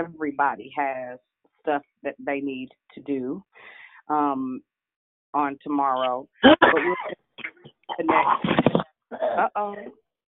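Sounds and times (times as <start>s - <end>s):
speech: 0.0s - 4.7s, 5.3s - 7.2s, 8.0s - 10.0s
person in a coughing fit: 6.4s - 9.7s.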